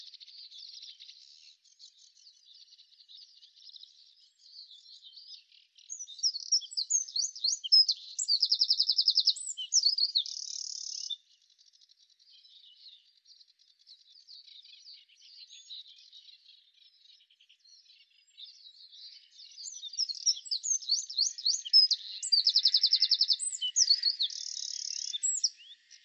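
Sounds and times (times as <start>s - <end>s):
Eurasian wren song: 5.9s - 11.3s, 18.2s - 26.0s.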